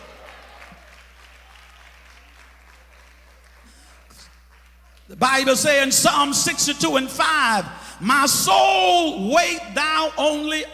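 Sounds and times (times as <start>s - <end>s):
audience clapping: 0.0s - 5.4s
speech: 5.1s - 10.7s.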